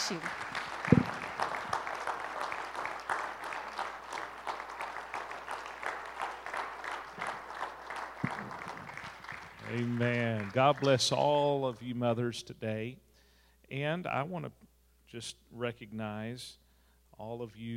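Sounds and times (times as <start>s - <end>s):
audience applauding: 0.0s - 11.5s
speech: 0.1s - 0.4s, 9.8s - 13.1s, 13.7s - 16.6s, 17.2s - 17.7s.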